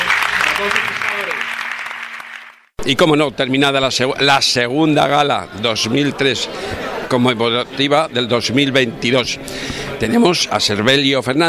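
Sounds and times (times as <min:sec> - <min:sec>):
audience applause: 0:00.0 - 0:02.7
speech: 0:00.6 - 0:01.3, 0:02.8 - 0:11.4.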